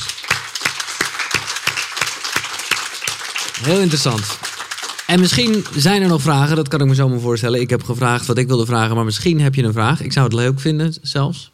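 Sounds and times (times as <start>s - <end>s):
audience applause: 0.0s - 6.7s
rhythmic clapping in unison: 0.0s - 6.7s
speech: 3.6s - 4.5s, 5.1s - 11.5s.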